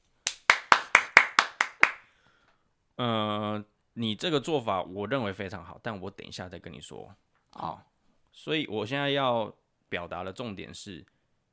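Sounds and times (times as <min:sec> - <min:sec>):
clapping to encourage: 0:00.0 - 0:02.0
speech: 0:03.0 - 0:11.1.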